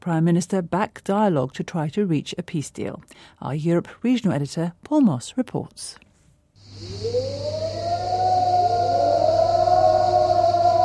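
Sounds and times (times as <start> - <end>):
speech: 0.0 - 6.0
siren sounding at dawn in Cyprus: 6.8 - 10.8.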